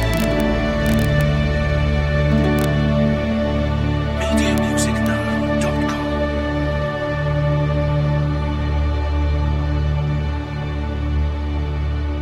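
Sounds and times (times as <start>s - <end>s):
strings: 0.0s - 11.2s
flute: 0.0s - 12.1s.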